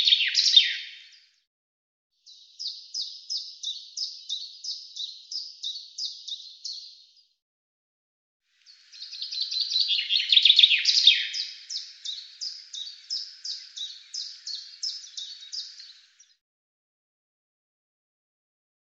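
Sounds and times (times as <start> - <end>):
bird song of fast descending trill of sharp notes: 0.0 - 1.5, 2.2 - 7.4, 8.6 - 16.4.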